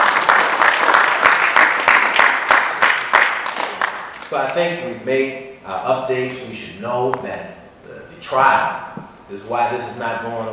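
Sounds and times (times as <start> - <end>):
applause: 0.0 - 4.4
speech: 4.3 - 7.6, 8.2 - 10.5.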